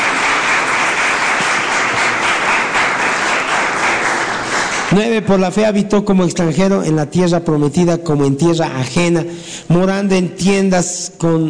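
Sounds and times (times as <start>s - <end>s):
crowd applauding: 0.0s - 5.2s
speech: 5.0s - 11.4s.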